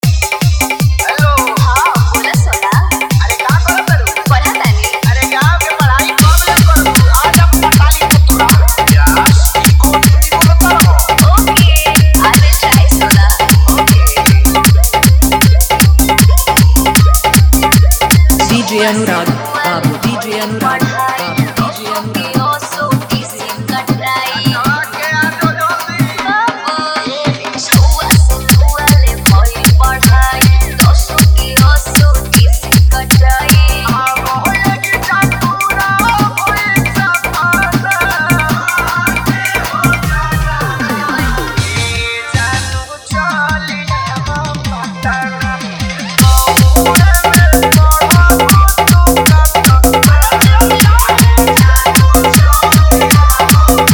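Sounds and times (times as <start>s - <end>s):
dholak bass dance mix: 0.0s - 53.9s.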